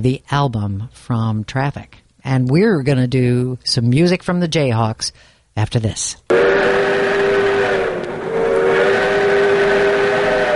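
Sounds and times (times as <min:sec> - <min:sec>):
speech: 0:00.0 - 0:06.9
steam train rumbling: 0:06.3 - 0:10.5.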